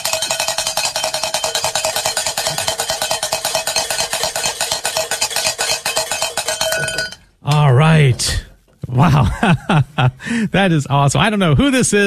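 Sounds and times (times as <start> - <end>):
hand bell ringing: 0.0 - 7.2
laughter: 8.9 - 10.3
speech: 9.0 - 12.0.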